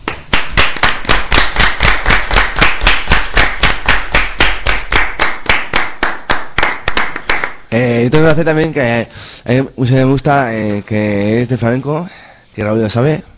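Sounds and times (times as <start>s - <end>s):
audience applauding in a steady fast rhythmic clap: 0.0s - 7.7s
speech: 7.8s - 13.3s.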